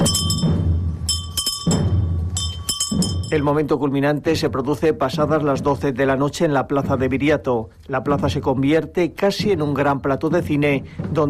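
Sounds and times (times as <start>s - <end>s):
viaticum handbells ringing in a procession: 0.0s - 3.6s
speech: 3.3s - 11.2s.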